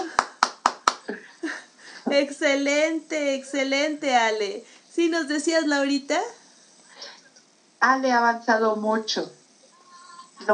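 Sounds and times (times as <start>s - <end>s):
hand clapping: 0.0s - 1.2s
speech: 1.1s - 1.3s, 2.1s - 6.4s, 7.8s - 9.4s, 10.4s - 10.5s.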